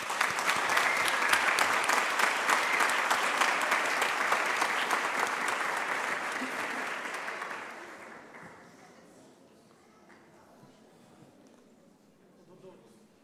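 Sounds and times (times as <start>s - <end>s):
applause: 0.0s - 9.2s.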